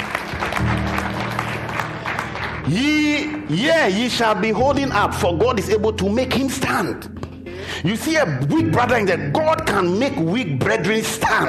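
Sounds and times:
audience clapping hands: 0:00.0 - 0:04.5
speech: 0:02.7 - 0:07.2, 0:07.8 - 0:11.4.

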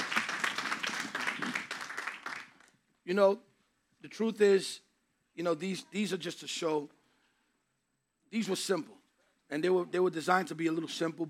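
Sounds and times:
group clapping: 0:00.0 - 0:02.8
speech: 0:03.1 - 0:07.0, 0:08.3 - 0:11.2.

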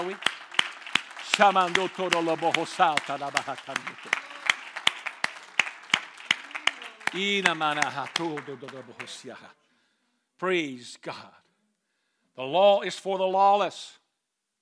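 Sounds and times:
speech: 0:00.0 - 0:00.5, 0:01.4 - 0:04.2, 0:07.1 - 0:09.6, 0:10.4 - 0:11.4, 0:12.4 - 0:14.0
audience clapping: 0:00.0 - 0:09.5.

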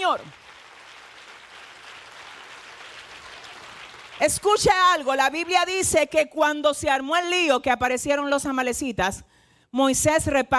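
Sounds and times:
speech: 0:00.0 - 0:00.5, 0:04.2 - 0:10.5
audience applause: 0:00.3 - 0:04.4.

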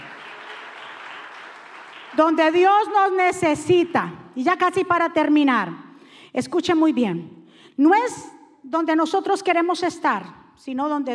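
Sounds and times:
audience applauding: 0:00.0 - 0:02.5
speech: 0:02.1 - 0:11.1.

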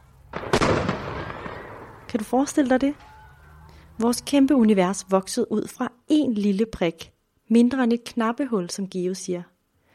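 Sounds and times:
firework rocket bursting with a big bang: 0:00.3 - 0:02.1
speech: 0:02.1 - 0:03.1, 0:04.0 - 0:09.5.

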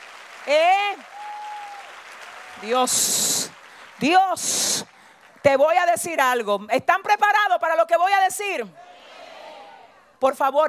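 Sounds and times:
church congregation applause: 0:00.0 - 0:05.6
speech: 0:00.4 - 0:01.2, 0:02.6 - 0:08.8, 0:10.2 - 0:10.6.

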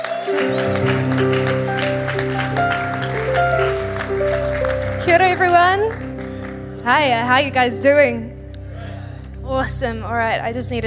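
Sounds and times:
audience applause: 0:00.0 - 0:07.5
speech: 0:06.9 - 0:08.3, 0:09.5 - 0:10.8.

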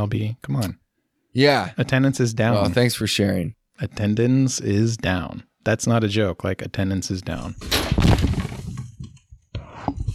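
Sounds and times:
speech: 0:00.0 - 0:08.4
person falling into a chair, breaking it: 0:07.6 - 0:09.0.

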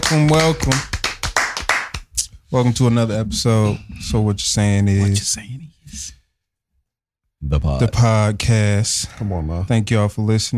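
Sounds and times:
hand claps: 0:00.0 - 0:02.3
speech: 0:00.1 - 0:00.9, 0:02.5 - 0:06.2, 0:07.4 - 0:10.5.

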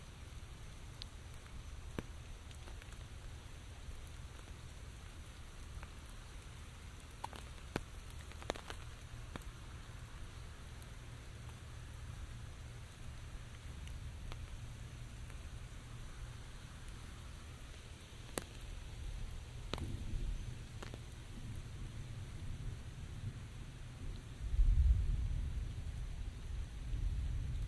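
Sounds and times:
light rain in a forest: 0:00.0 - 0:27.6.

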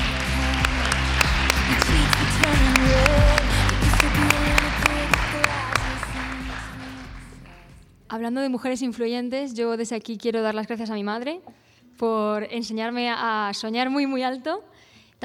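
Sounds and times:
audience applause: 0:00.1 - 0:07.3
speech: 0:08.2 - 0:15.2.

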